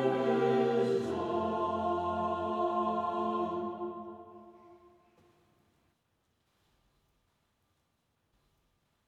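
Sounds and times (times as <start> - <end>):
closing song: 0.0 - 5.2.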